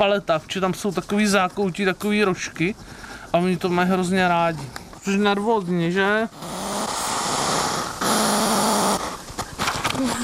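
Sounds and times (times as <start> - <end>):
speech: 0.0 - 6.6
hedgehog huffing loudly: 6.3 - 9.3.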